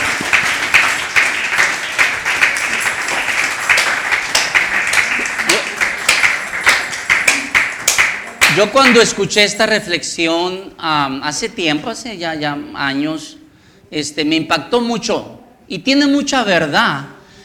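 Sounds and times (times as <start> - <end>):
audience applause: 0.0 - 9.1
speech: 8.6 - 17.2.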